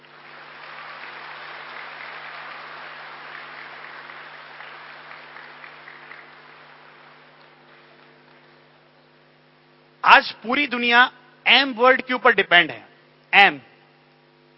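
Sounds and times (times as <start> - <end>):
audience applause: 0.0 - 8.7
speech: 10.0 - 13.7.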